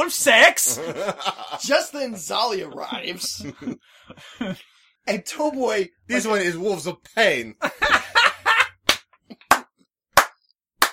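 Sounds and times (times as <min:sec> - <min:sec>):
speech: 0:00.0 - 0:08.0
laughter: 0:00.6 - 0:04.6, 0:07.6 - 0:09.4
slow hand clapping: 0:08.8 - 0:10.9.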